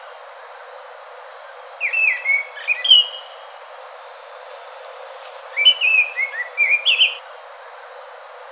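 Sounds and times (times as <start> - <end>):
Scaly thrush singing whistled phrases: 1.8 - 3.3, 5.5 - 7.2.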